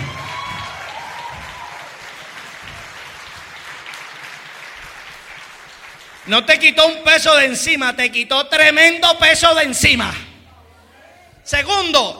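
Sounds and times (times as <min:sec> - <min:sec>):
audience applause: 0:00.0 - 0:06.4
speech: 0:06.3 - 0:10.3, 0:11.5 - 0:12.1.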